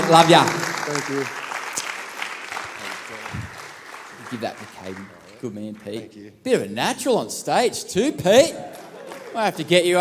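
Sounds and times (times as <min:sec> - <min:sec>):
audience applause: 0:00.0 - 0:06.0, 0:08.7 - 0:09.8
speech: 0:00.1 - 0:01.4, 0:04.3 - 0:10.0.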